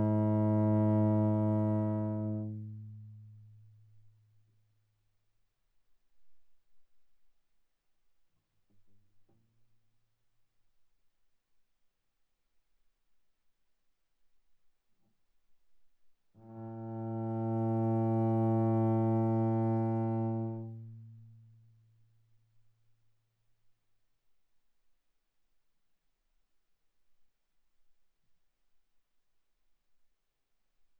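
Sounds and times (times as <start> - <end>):
viola played arco sul G, mezzo-forte, G3 to B3: 0.0 - 3.2, 16.4 - 21.1.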